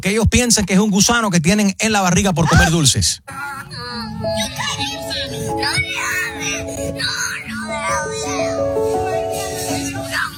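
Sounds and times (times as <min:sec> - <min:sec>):
speech: 0:00.0 - 0:03.6
children screaming and crying: 0:02.5 - 0:10.3
steady musical tone: 0:03.8 - 0:10.3.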